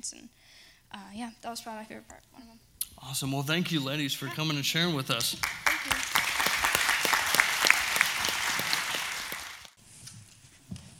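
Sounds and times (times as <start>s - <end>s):
speech: 0.0s - 6.1s
audience applause: 5.2s - 9.8s.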